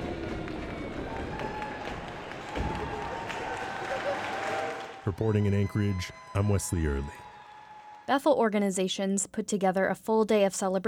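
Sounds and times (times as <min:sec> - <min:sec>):
crowd applause: 0:00.0 - 0:08.1
speech: 0:05.1 - 0:07.2, 0:08.1 - 0:10.8.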